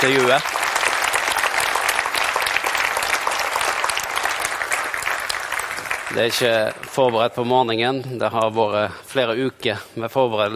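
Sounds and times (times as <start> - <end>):
audience applause: 0.0 - 7.5
speech: 0.3 - 0.9, 6.1 - 10.5.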